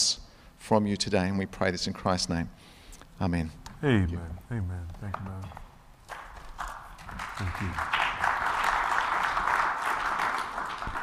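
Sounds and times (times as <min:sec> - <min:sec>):
speech: 0:00.7 - 0:05.6, 0:07.4 - 0:08.1
crowd clapping: 0:06.0 - 0:11.0.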